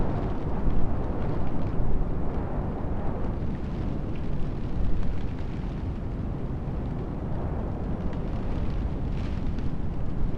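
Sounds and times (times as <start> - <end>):
stormy wind buffeting camper walls: 0.0 - 10.3.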